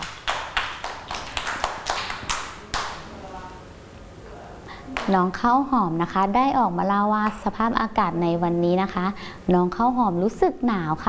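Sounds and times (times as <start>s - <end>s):
children clapping: 0.0s - 3.1s
speech: 5.1s - 11.0s.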